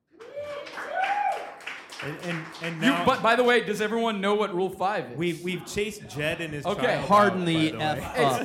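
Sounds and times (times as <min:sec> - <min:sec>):
audience applause: 0:00.1 - 0:03.5
speech: 0:02.0 - 0:08.4.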